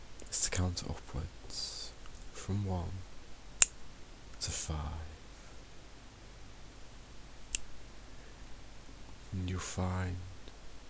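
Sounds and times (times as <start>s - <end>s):
hiss: 0.0s - 10.8s
speech: 0.6s - 1.7s, 2.4s - 3.1s, 4.4s - 5.1s, 9.3s - 10.3s
finger click during a hypnotic count: 7.5s - 7.7s.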